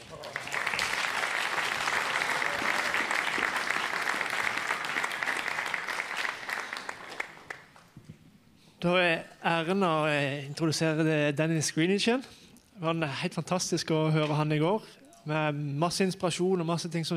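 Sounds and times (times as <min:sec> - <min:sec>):
audience applause: 0:00.0 - 0:07.8
speech: 0:08.8 - 0:17.1.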